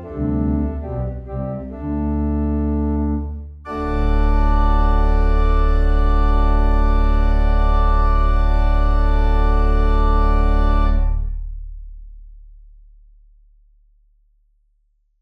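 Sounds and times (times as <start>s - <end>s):
organ playing a folk tune: 0.0s - 11.2s.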